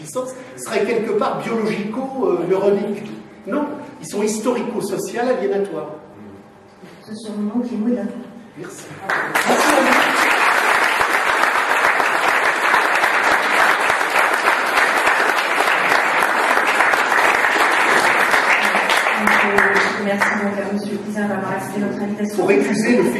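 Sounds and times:
speech: 0.0s - 6.1s, 7.1s - 10.2s, 20.1s - 23.1s
audience applause: 9.0s - 20.4s.

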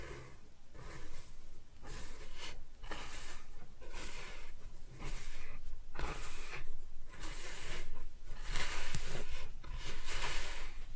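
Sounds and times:
kinetic sand being cut and scooped: 0.1s - 10.8s.

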